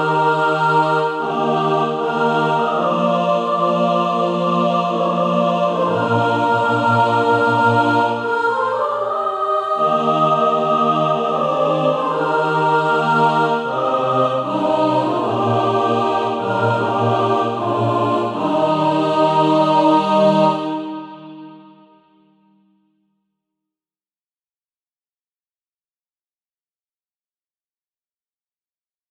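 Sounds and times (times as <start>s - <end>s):
mixed SATB choir practice music: 0.0s - 22.4s.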